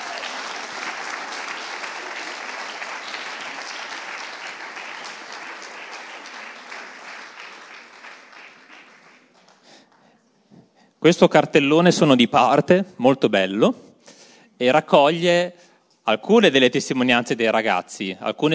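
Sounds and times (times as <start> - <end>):
audience applause: 0.0 - 9.9
speech: 11.0 - 13.9, 14.6 - 18.5.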